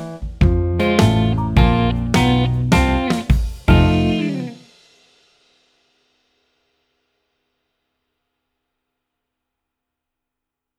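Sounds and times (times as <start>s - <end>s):
blues jazz backing track: 0.0s - 4.6s.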